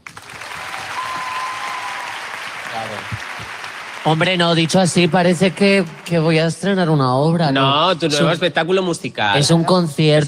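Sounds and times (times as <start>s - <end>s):
applause: 0.0s - 7.0s
speech: 2.7s - 10.2s.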